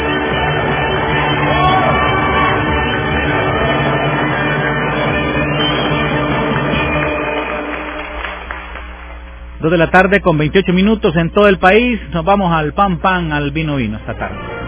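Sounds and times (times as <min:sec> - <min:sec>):
large crowd applauding and cheering: 0:00.0 - 0:10.0
speech: 0:09.6 - 0:14.5.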